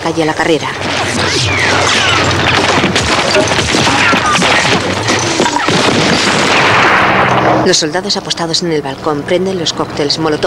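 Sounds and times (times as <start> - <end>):
speech: 0.1 - 4.3, 7.6 - 10.4
gunshots in a street battle: 0.8 - 7.6
tank explosion in a street battle: 1.0 - 7.5.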